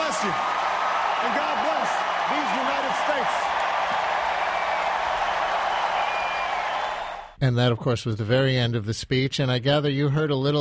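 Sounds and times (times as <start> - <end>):
audience applauding at end of speech: 0.0 - 7.3
speech: 7.4 - 10.6.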